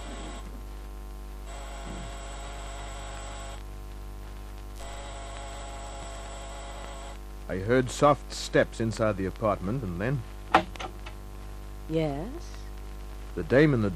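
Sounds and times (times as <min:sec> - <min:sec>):
apartment door buzzer: 0:01.4 - 0:03.6, 0:04.8 - 0:07.2
speech: 0:07.5 - 0:10.3, 0:11.9 - 0:12.6, 0:13.4 - 0:13.9.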